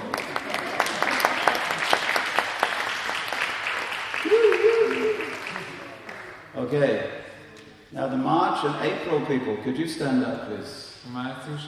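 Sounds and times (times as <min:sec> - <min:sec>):
crowd clapping steadily: 0:00.0 - 0:06.5
speech: 0:07.9 - 0:11.6.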